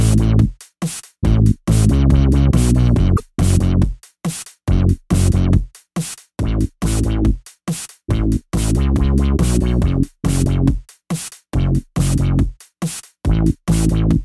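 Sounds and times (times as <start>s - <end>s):
bass: 0.0s - 0.5s, 1.2s - 3.9s, 4.7s - 5.6s, 6.4s - 7.4s, 8.1s - 10.8s, 11.6s - 12.5s, 13.3s - 14.2s.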